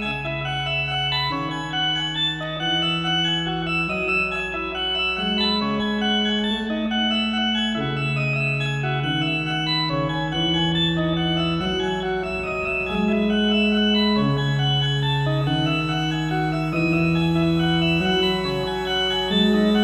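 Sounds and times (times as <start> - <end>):
stereo music on Farfisa Compact Duo Deluxe: 0.0 - 19.8.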